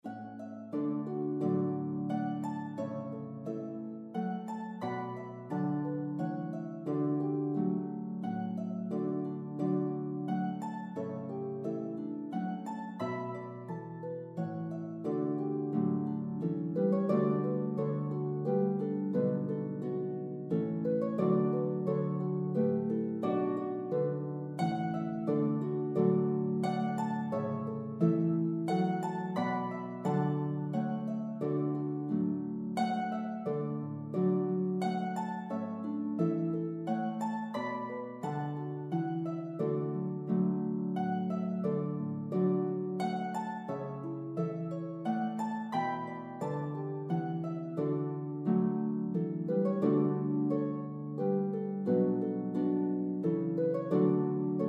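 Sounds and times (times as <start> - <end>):
harp duet: 0.0 - 54.6.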